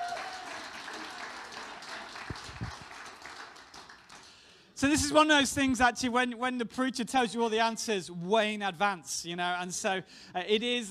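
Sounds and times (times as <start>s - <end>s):
audience applause: 0.0s - 4.4s
speech: 4.8s - 10.9s.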